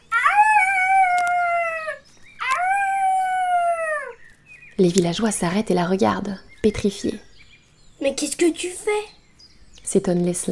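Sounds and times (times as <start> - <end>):
wolf-like howl: 0.0 - 4.2
speech: 4.8 - 7.3, 8.0 - 9.2, 9.9 - 10.4.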